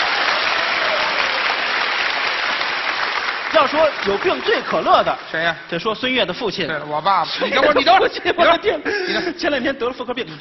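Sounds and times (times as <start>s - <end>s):
audience applause: 0.0s - 5.7s
speech: 3.6s - 10.3s.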